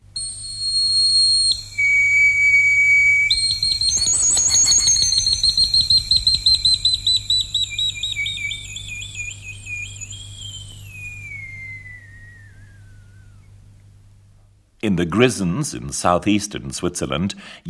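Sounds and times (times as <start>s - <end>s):
Roman bone fife whistle: 0.2s - 13.7s
speech: 14.9s - 17.6s.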